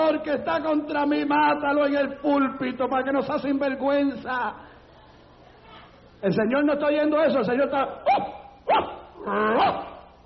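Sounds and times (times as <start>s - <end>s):
speech: 0.1s - 4.7s, 6.2s - 9.9s
human voice imitating a rabid dog barking: 8.0s - 10.1s.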